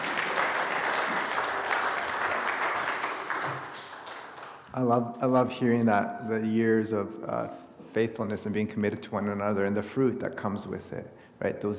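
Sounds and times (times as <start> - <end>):
audience applause: 0.0 - 4.6
speech: 4.8 - 11.7.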